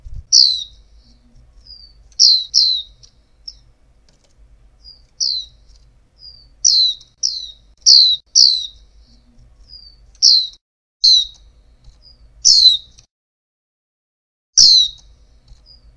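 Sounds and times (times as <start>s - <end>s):
female white-eye downward-slurred chirps: 0.3s - 3.7s, 4.8s - 11.4s, 12.0s - 13.0s, 14.6s - 15.9s.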